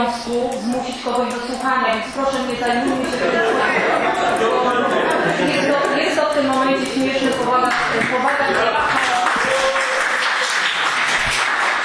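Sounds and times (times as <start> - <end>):
speech: 0.0 - 9.2
laughter: 2.6 - 11.6
applause in council chamber: 7.7 - 11.8.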